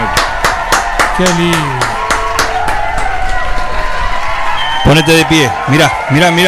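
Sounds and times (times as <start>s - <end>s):
stadium crowd cheering ovation: 0.0s - 6.4s
speech: 1.2s - 1.9s, 4.9s - 6.4s.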